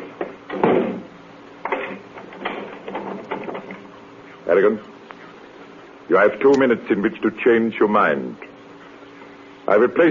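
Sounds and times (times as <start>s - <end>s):
door thudding shut: 0.5s - 1.1s
speech: 4.5s - 4.9s, 6.1s - 8.5s, 9.7s - 10.0s.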